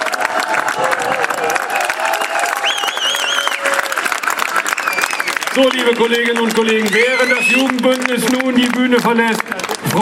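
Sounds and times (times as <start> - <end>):
audience applause: 0.0 - 9.9
speech: 5.6 - 9.9.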